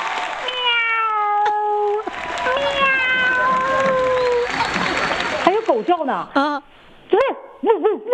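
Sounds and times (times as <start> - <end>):
crowd noise: 0.0 - 0.8, 1.4 - 7.9
person imitating cat meows in a high nasal voice: 0.4 - 4.5
laughter: 1.9 - 6.5, 7.6 - 8.1
speech: 5.9 - 6.5.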